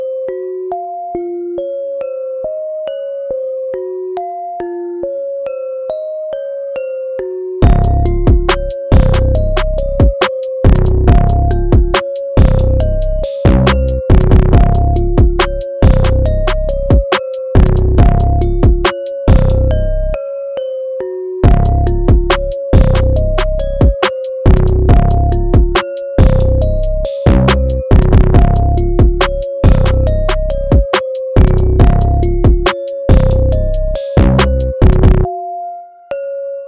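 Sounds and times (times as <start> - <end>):
music beat: 7.6 - 20.2, 21.4 - 35.3.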